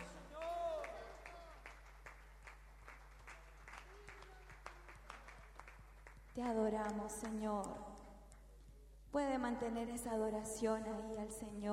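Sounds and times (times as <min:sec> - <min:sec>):
audience applause: 0:00.0 - 0:06.2
speech: 0:06.4 - 0:07.9, 0:09.2 - 0:11.7.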